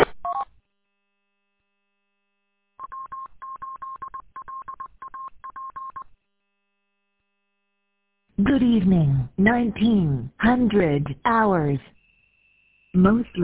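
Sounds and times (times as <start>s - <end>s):
telephone touch-tone dialing tones: 2.8s - 6.0s
speech: 8.4s - 12.0s, 13.0s - 13.4s.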